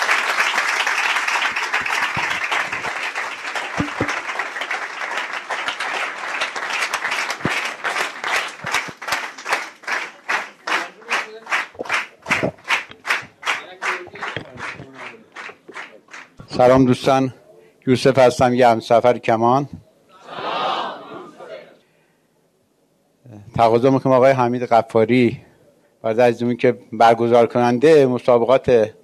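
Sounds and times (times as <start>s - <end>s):
audience applause at a gathering in honour of a speaker: 0.0s - 16.4s
speech: 16.6s - 19.8s, 23.6s - 25.4s, 26.0s - 29.0s.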